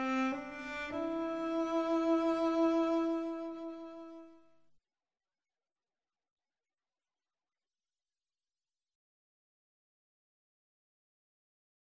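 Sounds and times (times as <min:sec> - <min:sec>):
cello: 0:00.0 - 0:04.4.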